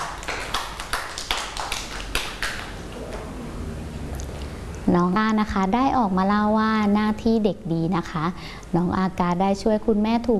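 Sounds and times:
children clapping hands: 0.0 - 2.9
speech: 4.9 - 10.3.

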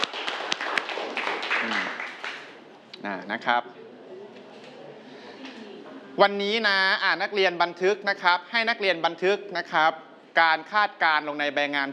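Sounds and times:
students clapping in a classroom: 0.0 - 2.6
speech: 3.0 - 3.8, 6.2 - 11.9.

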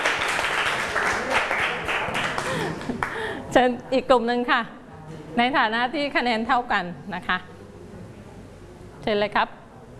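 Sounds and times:
applause: 0.0 - 3.3
speech: 3.6 - 7.5, 9.0 - 9.6.

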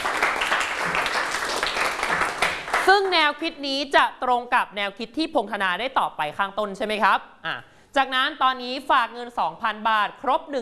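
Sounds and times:
students in a classroom clapping: 0.0 - 3.2
speech: 2.9 - 10.5.

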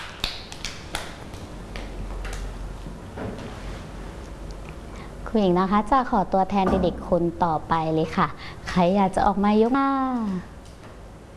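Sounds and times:
children clapping: 0.0 - 1.9
speech: 5.3 - 10.5.

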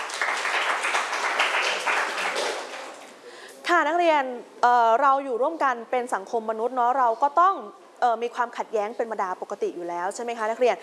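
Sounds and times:
students clapping for a classmate: 0.0 - 3.2
speech: 3.8 - 10.8.

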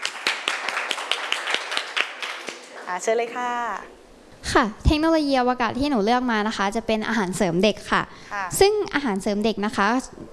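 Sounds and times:
audience clapping: 0.0 - 2.9
speech: 2.9 - 10.3.

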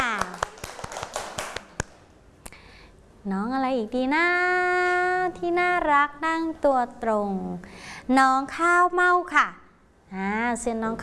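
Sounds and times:
children clapping hands: 0.0 - 2.0
speech: 3.2 - 11.0.

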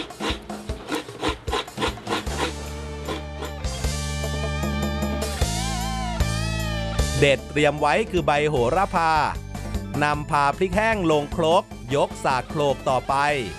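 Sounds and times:
coconut being scraped on a grater: 0.0 - 3.6
music with bass and melody: 0.0 - 13.5
speech: 7.2 - 9.4, 10.0 - 13.5.

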